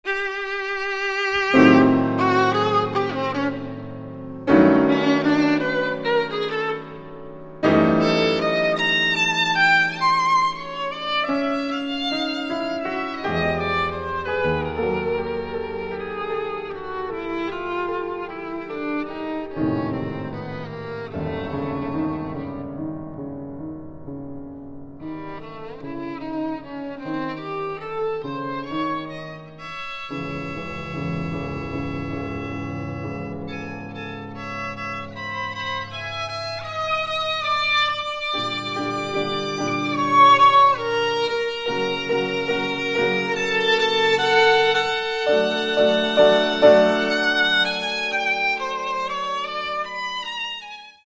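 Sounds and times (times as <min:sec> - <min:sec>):
violin and piano music: 0:00.0 - 0:51.0.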